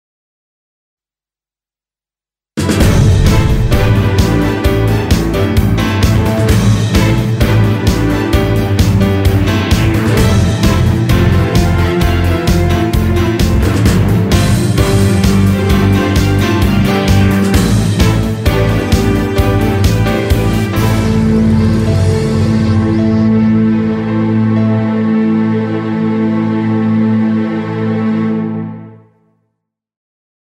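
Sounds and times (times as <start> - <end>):
theme music: 2.6 - 29.3.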